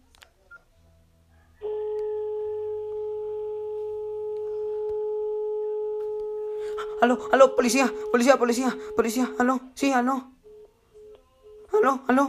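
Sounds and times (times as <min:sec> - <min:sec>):
telephone dialing tone: 0:01.6 - 0:09.7
speech: 0:07.0 - 0:10.4, 0:11.8 - 0:12.2.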